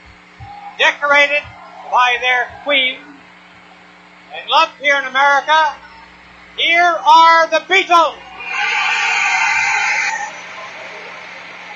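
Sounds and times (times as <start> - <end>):
screaming concert crowd: 0.4 - 4.0, 8.0 - 11.7
speech: 0.8 - 3.1, 4.3 - 5.8, 6.6 - 8.3.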